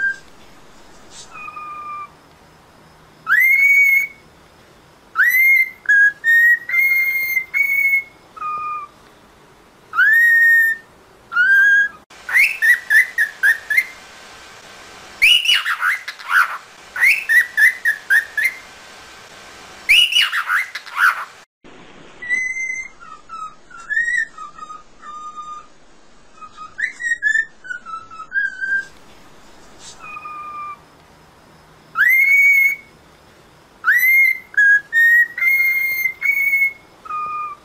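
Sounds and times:
cockatiel whistling: 0.0 - 0.4, 1.0 - 2.1, 3.2 - 4.2, 5.2 - 9.0, 9.9 - 14.0, 15.2 - 18.7, 19.9 - 21.3, 22.2 - 25.7, 26.3 - 29.0, 29.8 - 30.8, 31.9 - 32.9, 33.8 - 37.6.

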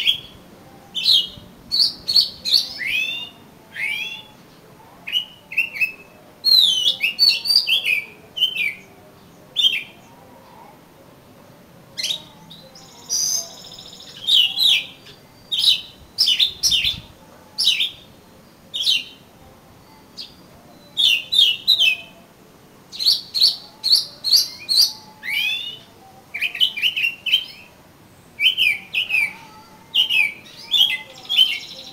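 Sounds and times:
oriental magpie-robin song: 0.0 - 4.4, 5.1 - 8.9, 9.6 - 10.0, 12.0 - 18.1, 18.7 - 19.2, 20.2 - 22.1, 22.9 - 27.7, 28.4 - 31.9.

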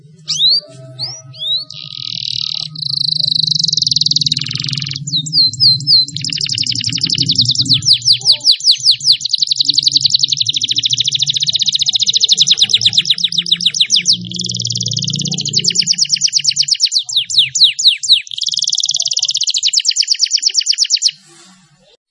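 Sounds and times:
Atlantic canary trilling and chirping: 0.0 - 21.8.

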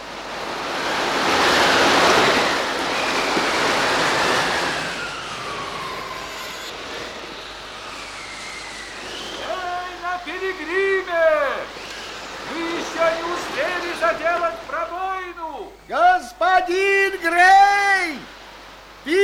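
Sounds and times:
stormy sea waves roaring: 0.0 - 19.2
thin whistling tones: 1.5 - 10.4.

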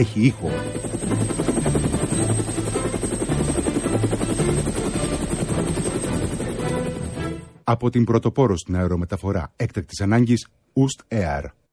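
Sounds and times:
speech: 0.0 - 1.4, 7.7 - 11.6
GAP4 helicopter flying: 0.0 - 7.6.

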